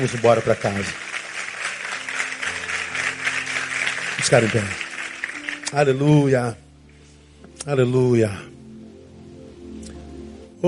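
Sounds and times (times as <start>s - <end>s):
speech: 0.0s - 1.1s, 4.2s - 4.8s, 5.7s - 6.6s, 7.6s - 8.5s
audience applauding: 0.0s - 6.4s.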